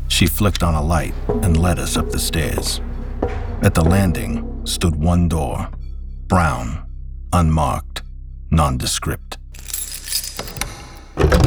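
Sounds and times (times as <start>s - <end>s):
speech: 0.2s - 7.9s, 8.5s - 9.3s
bunch of keys jangling: 9.6s - 11.4s.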